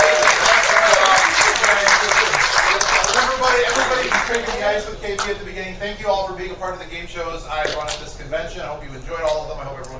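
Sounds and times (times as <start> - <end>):
audience applause: 0.0 - 4.7
speech: 5.0 - 9.9.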